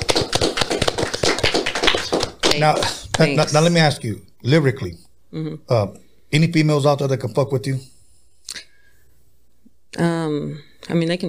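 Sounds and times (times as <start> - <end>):
small group applauding: 0.0 - 3.7
speech: 2.6 - 7.9, 10.0 - 11.2.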